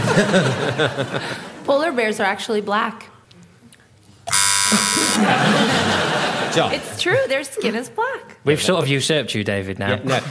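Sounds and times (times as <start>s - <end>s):
laughter: 0.0s - 1.6s, 4.7s - 7.4s, 10.0s - 10.2s
speech: 0.2s - 3.1s, 4.7s - 10.2s
quiz show buzzer buzzing in: 4.3s - 5.6s.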